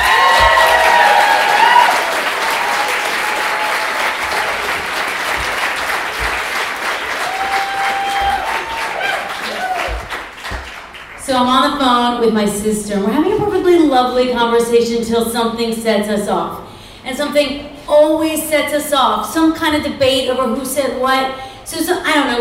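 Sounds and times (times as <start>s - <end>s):
faint voices and cheers: 0.0s - 4.9s, 7.1s - 10.1s
crowd applause: 0.0s - 11.2s
speech: 12.2s - 22.3s.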